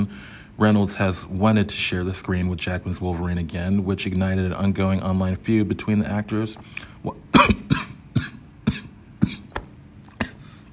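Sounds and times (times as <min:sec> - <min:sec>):
speech: 0:00.0 - 0:07.8
person coughing after choking on water: 0:07.3 - 0:10.6.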